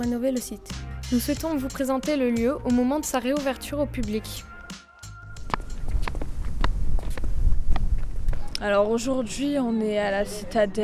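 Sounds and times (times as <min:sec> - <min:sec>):
speech: 0:00.0 - 0:04.5, 0:08.6 - 0:10.8
strong wind on a hilltop fort: 0:05.4 - 0:09.3.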